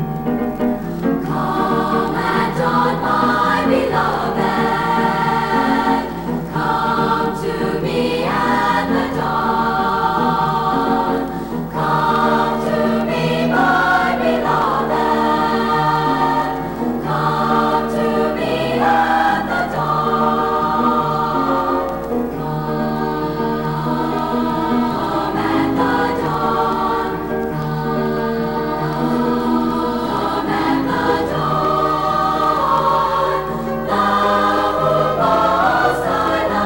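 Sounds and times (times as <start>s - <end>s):
chorus singing a Spanish ballad: 0.2s - 36.6s.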